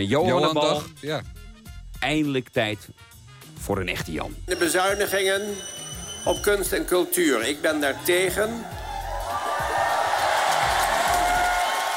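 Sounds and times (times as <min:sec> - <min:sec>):
speech: 0:00.0 - 0:01.4, 0:02.0 - 0:08.8
left-wing crowd protesting arts and culture cuts clapping and cheering: 0:07.6 - 0:11.9
scattered shouts and whoops from protest crowd: 0:07.9 - 0:11.9.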